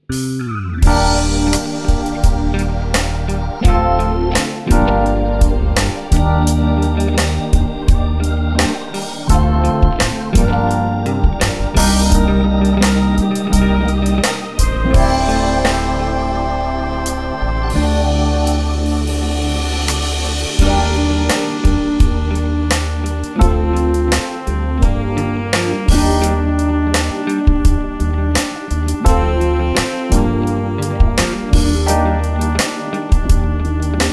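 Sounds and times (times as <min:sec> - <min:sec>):
instrumental music in B flat: 0:00.0 - 0:34.1.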